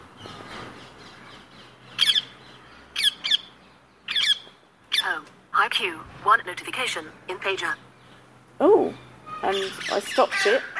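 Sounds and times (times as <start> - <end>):
parakeets squawking: 1.2 - 5.2, 9.2 - 10.7
speech: 5.7 - 7.9, 8.6 - 10.7.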